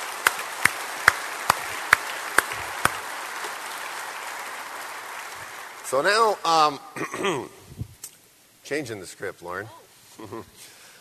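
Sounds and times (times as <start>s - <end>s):
audience applause: 0.0s - 6.8s
speech: 5.9s - 7.6s, 8.7s - 10.8s.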